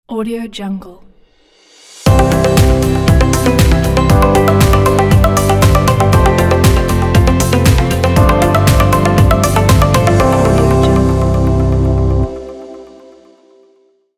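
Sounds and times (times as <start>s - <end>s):
beauty logo jingle: 2.1s - 13.5s.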